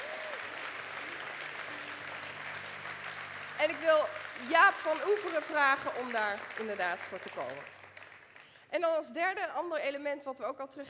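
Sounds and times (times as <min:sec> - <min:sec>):
audience applause: 0:00.0 - 0:08.6
speech: 0:03.6 - 0:07.8, 0:08.7 - 0:10.8.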